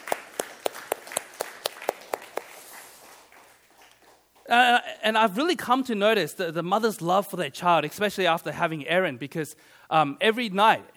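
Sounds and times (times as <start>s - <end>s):
audience round of applause: 0.0s - 4.2s
speech: 4.5s - 10.9s.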